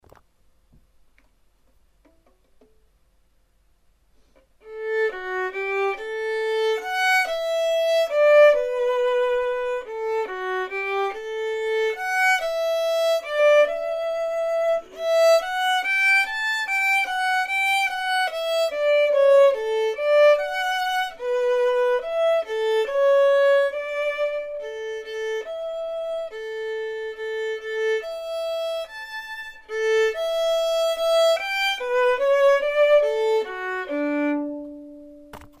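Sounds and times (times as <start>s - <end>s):
violin performance: 4.6s - 35.5s.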